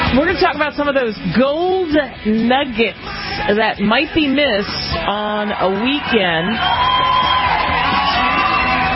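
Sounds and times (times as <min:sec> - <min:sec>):
speech: 0:00.1 - 0:07.2
crowd cheering with yells and whoops: 0:05.0 - 0:08.9.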